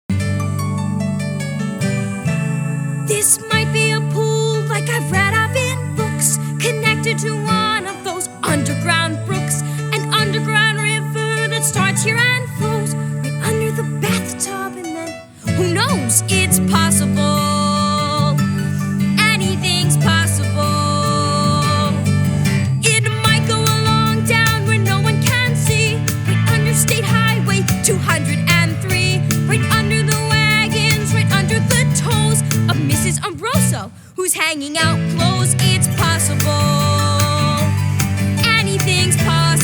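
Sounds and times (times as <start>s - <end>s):
guide vocal: 1.2s - 39.6s.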